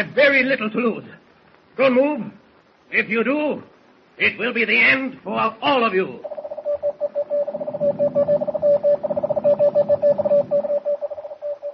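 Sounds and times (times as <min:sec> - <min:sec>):
speech: 0:00.0 - 0:01.2, 0:01.8 - 0:06.4
faint low static rumble: 0:00.0 - 0:11.7
radio message beeping in keyed pulses: 0:06.2 - 0:11.7.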